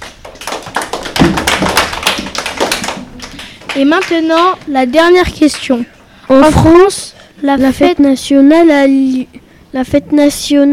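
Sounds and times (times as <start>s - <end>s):
applause: 0.0s - 4.6s
speech: 3.8s - 10.7s.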